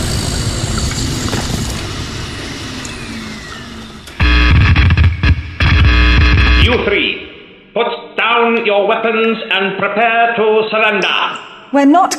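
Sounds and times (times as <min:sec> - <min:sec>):
giant drill breaking through a wall: 0:00.0 - 0:06.7
speech: 0:08.6 - 0:12.1.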